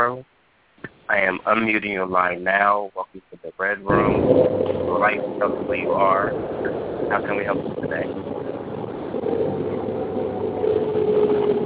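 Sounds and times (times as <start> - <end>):
car interior noise over phone line: 0.8 - 11.6
feedback: 0.8 - 11.6
speech: 1.1 - 8.6.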